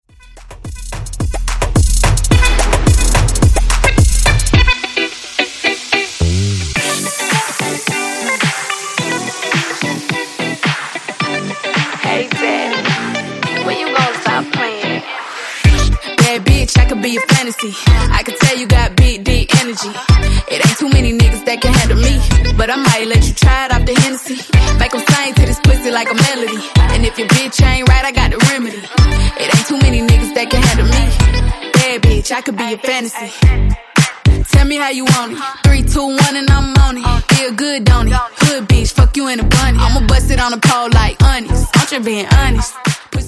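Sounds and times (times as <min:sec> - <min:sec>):
Top 40 moombahton bootleg remix: 0:00.1 - 0:43.2.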